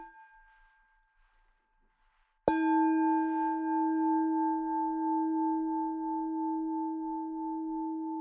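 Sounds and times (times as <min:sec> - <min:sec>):
meditation bell ringing: 0:02.5 - 0:08.1.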